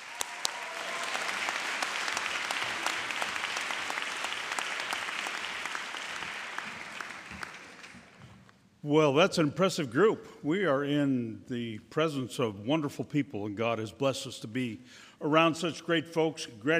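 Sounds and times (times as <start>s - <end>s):
audience applause for a group finishing their academic year: 0.0s - 8.2s
speech: 8.8s - 16.7s.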